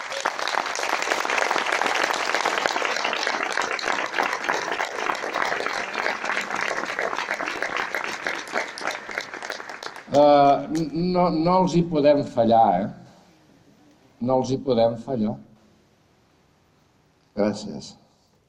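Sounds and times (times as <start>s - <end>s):
audience applause: 0.0s - 10.9s
speech: 10.2s - 13.0s, 14.2s - 15.4s, 17.5s - 18.0s.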